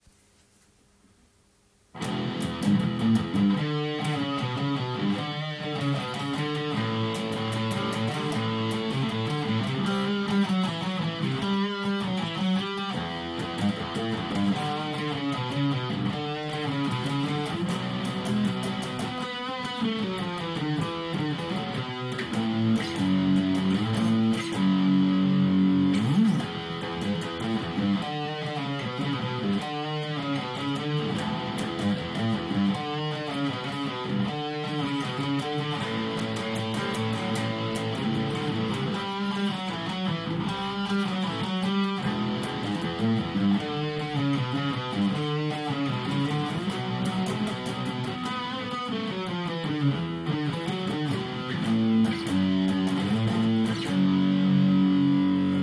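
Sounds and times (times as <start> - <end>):
rock and roll music: 2.0 - 55.6.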